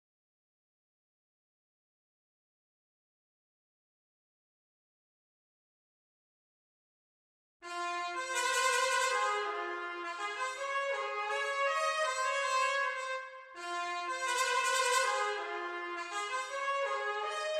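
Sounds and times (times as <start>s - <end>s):
B-flat trumpet playing: 7.7s - 17.5s.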